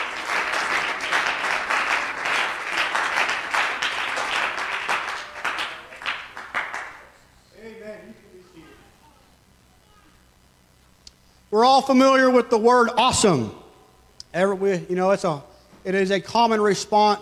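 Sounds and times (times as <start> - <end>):
audience clapping hands: 0.0 - 7.2
speech: 11.6 - 13.6, 14.3 - 17.2.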